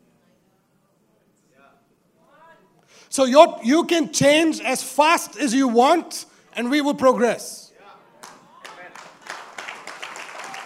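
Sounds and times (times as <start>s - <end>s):
speech: 3.1s - 7.6s
audience clapping: 8.2s - 10.6s.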